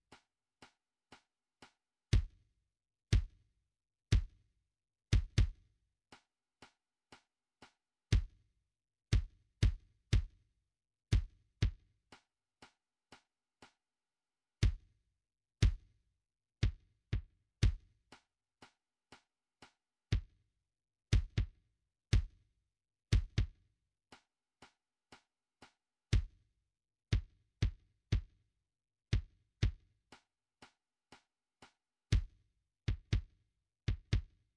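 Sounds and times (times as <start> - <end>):
kick drum: 2.1 - 2.4, 3.1 - 3.4, 4.1 - 4.5, 5.1 - 5.7, 8.1 - 8.5, 9.1 - 10.4, 11.1 - 11.9, 14.6 - 15.0, 15.6 - 16.0, 16.6 - 18.0, 20.1 - 20.4, 21.1 - 22.5, 23.1 - 23.6, 26.1 - 26.5, 27.1 - 28.4, 29.1 - 30.0, 32.1 - 34.5.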